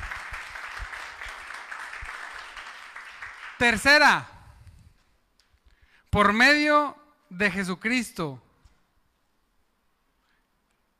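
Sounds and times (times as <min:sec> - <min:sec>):
audience applauding: 0:00.0 - 0:04.0
speech: 0:03.6 - 0:04.3, 0:06.1 - 0:08.4.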